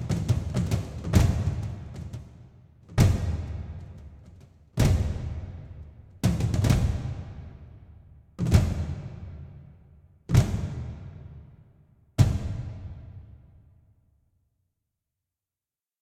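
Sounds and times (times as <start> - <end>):
dragon battle drums like a giant heart: 0.0 - 7.8, 8.4 - 11.6, 12.2 - 13.4.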